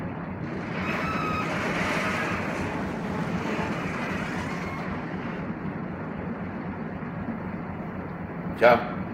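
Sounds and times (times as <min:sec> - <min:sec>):
boat engine running slow astern: 0:00.1 - 0:08.1
churning surge of water: 0:00.4 - 0:06.1
speech: 0:08.6 - 0:08.9.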